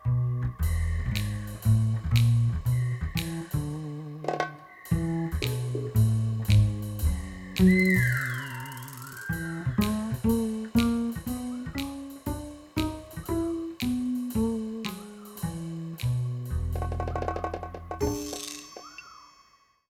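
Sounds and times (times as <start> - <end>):
instrumental reprise: 0.0 - 19.1.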